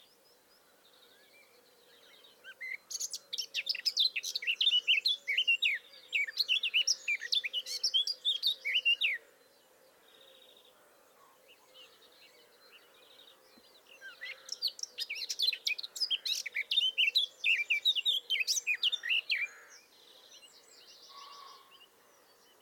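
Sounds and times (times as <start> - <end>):
Eurasian blackcap warbling song: 2.5 - 9.2, 14.0 - 19.5.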